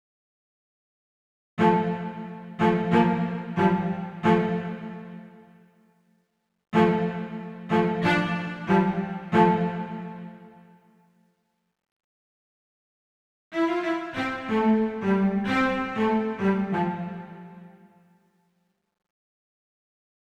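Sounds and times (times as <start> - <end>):
old cello melody in C: 1.6 - 5.4, 6.8 - 10.7, 13.6 - 18.0.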